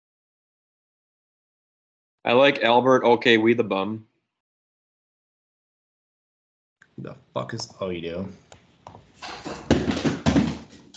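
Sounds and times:
speech: 0:02.2 - 0:04.1, 0:07.0 - 0:10.1
person falling out of a chair: 0:09.0 - 0:10.9.

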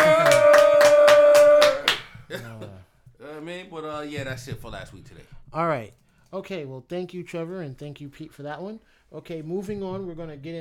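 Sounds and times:
applause claps: 0:00.0 - 0:02.2
speech: 0:04.0 - 0:10.5.

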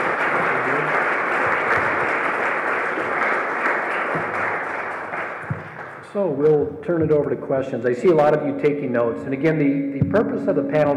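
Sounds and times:
audience applause: 0:00.0 - 0:06.0
speech: 0:06.2 - 0:10.9.

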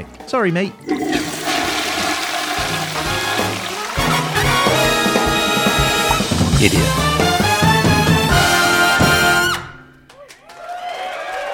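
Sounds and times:
speech: 0:00.0 - 0:01.0, 0:06.6 - 0:07.0
toilet flushing: 0:00.8 - 0:09.4.

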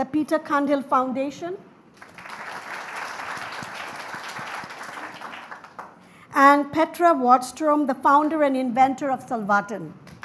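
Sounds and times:
speech: 0:00.0 - 0:02.1, 0:06.4 - 0:10.0
round of applause: 0:01.9 - 0:06.1, 0:10.1 - 0:10.2.

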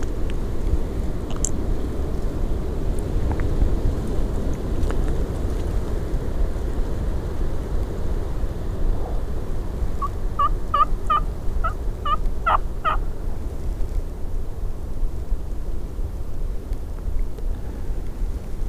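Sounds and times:
low rumble of wind noise: 0:00.0 - 0:18.6
wild turkey gobbling: 0:10.0 - 0:13.0.

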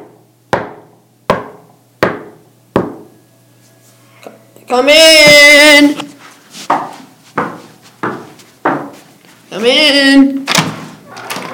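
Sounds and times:
knocking on a door: 0:00.5 - 0:03.1, 0:06.7 - 0:09.0
speech: 0:04.7 - 0:06.1, 0:09.6 - 0:10.5.

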